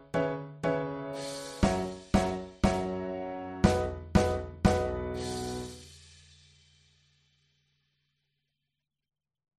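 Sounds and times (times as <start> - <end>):
drum: 1.2 - 3.0, 3.6 - 6.8.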